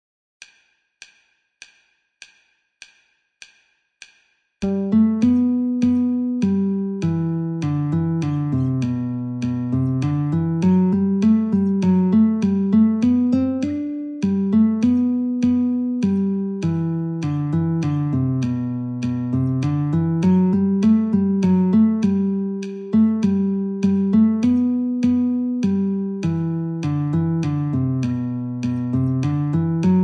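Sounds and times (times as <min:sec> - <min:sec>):
guitar metronome at 50: 0:04.6 - 0:30.0.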